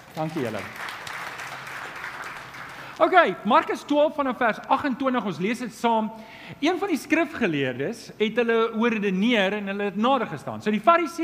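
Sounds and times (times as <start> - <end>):
audience applause: 0.0 - 3.1
speech: 0.2 - 0.8, 3.0 - 11.2.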